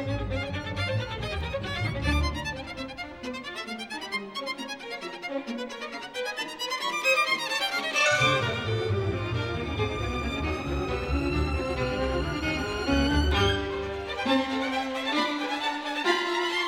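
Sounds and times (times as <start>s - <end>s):
string orchestra: 0.0s - 16.6s
violin: 0.0s - 16.6s.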